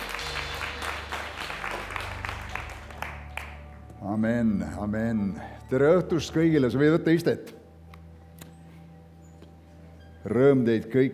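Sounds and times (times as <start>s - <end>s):
audience applause: 0.0s - 3.6s
speech: 4.0s - 7.6s, 10.2s - 11.1s.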